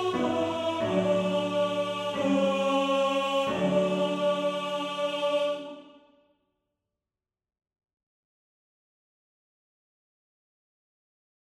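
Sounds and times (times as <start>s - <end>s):
male choir singing a motet tenor part: 0.0s - 6.1s.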